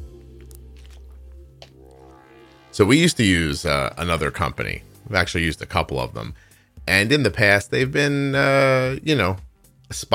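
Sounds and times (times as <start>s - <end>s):
steady low hum: 0.0s - 4.9s
person sipping water: 0.3s - 2.0s
speech: 2.8s - 10.1s.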